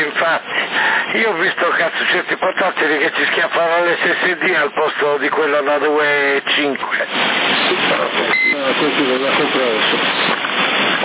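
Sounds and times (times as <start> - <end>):
speech: 0.2 - 11.0
phone beep: 8.3 - 8.6.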